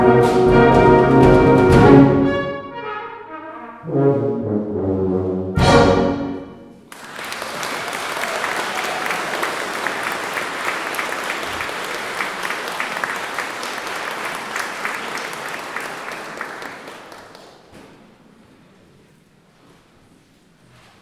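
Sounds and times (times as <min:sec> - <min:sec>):
jazz brass music: 0:00.0 - 0:06.8.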